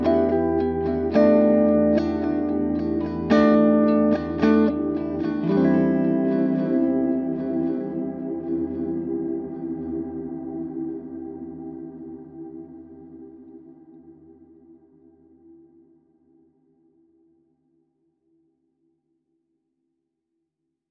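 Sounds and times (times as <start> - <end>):
Walrus Audio Slöer sustained sine tone: 0.0 - 15.9.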